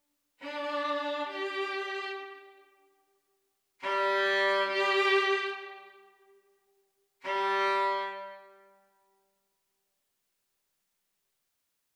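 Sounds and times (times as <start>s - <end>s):
violin duet practice: 0.4s - 2.9s, 3.8s - 6.3s, 7.2s - 8.7s.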